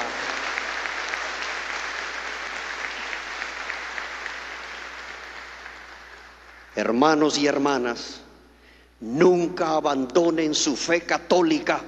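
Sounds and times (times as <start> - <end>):
large group applauding in a reverberant room: 0.0 - 7.0
speech: 6.8 - 8.2, 9.0 - 11.8.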